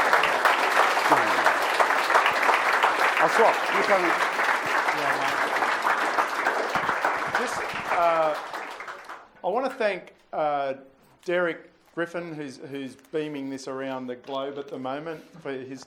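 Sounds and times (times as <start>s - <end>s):
audience clapping: 0.0s - 9.4s
speech: 3.2s - 4.3s, 5.0s - 5.4s, 7.4s - 8.5s, 9.4s - 15.8s.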